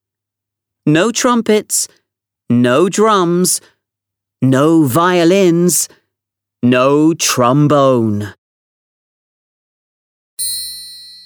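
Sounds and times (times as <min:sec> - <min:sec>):
speech: 0:00.8 - 0:03.7, 0:04.4 - 0:06.0, 0:06.6 - 0:08.4
single bright ringing musical note in a hall: 0:10.4 - 0:11.2.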